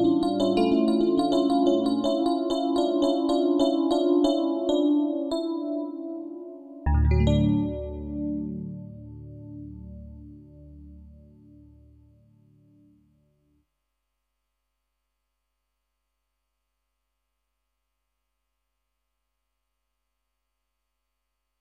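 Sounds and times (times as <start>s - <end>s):
electric piano: 0.0s - 11.9s.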